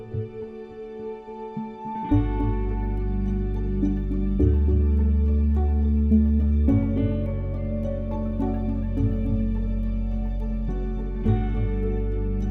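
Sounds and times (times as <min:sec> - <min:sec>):
bittersweet upbeat dramedy music: 0:00.3 - 0:12.5.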